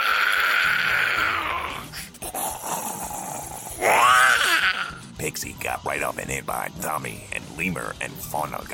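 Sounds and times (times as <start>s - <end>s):
voice imitating zombie groans: 0.0s - 5.0s
speech: 5.4s - 8.7s.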